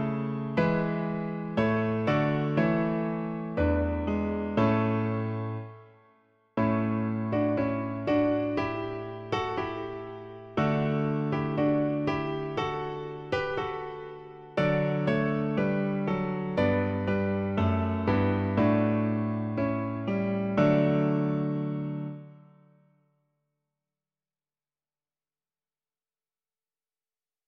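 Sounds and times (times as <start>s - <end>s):
piano version: 0.0s - 6.0s, 6.6s - 22.5s.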